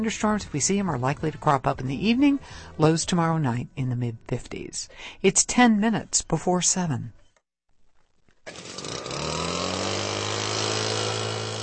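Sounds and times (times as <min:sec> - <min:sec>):
speech: 0:00.0 - 0:07.2, 0:08.5 - 0:08.8
small gas leaf blower engine starting and revving: 0:08.4 - 0:11.6.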